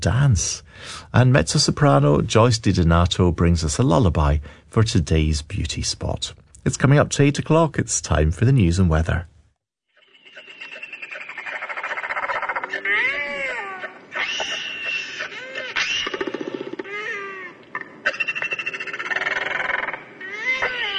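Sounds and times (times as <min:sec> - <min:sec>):
speech: 0:00.0 - 0:09.3
Royal albatross call: 0:10.0 - 0:20.9.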